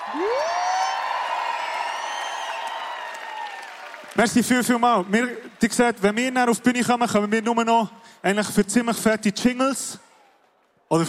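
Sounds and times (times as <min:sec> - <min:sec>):
applause: 0:00.0 - 0:07.6, 0:10.1 - 0:11.0
speech: 0:00.1 - 0:00.5, 0:04.2 - 0:10.1.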